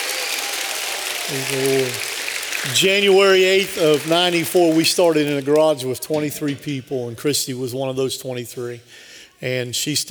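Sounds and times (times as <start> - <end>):
crowd clapping: 0.0 - 6.9
speech: 1.3 - 10.0.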